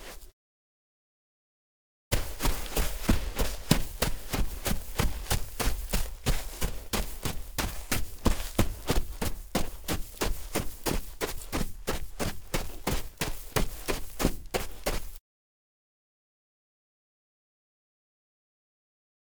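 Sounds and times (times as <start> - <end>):
foley footsteps in snow: 2.1 - 15.2.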